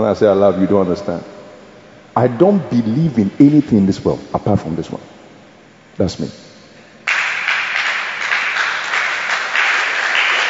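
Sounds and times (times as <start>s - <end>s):
speech: 0.0s - 1.4s, 2.2s - 5.1s, 6.0s - 6.4s
audience clapping: 7.0s - 10.4s.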